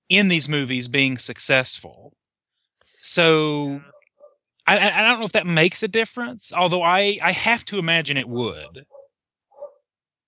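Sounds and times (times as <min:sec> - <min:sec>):
speech: 0:00.1 - 0:02.2, 0:03.0 - 0:03.9, 0:04.7 - 0:09.0
dog barking: 0:03.8 - 0:04.4, 0:08.8 - 0:09.9.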